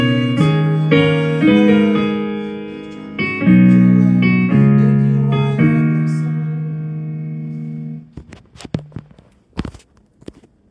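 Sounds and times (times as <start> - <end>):
person singing: 0.0 - 7.5.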